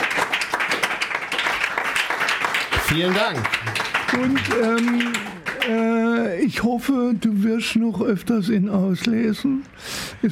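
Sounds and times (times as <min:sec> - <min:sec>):
audience clapping at the end of a birthday event: 0:00.0 - 0:06.2
speech: 0:02.9 - 0:10.2.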